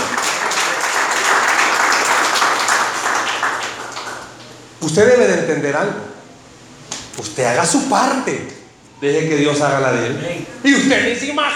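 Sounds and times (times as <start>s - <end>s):
audience applause: 0.0s - 4.5s
speech: 4.8s - 6.2s, 7.2s - 11.5s.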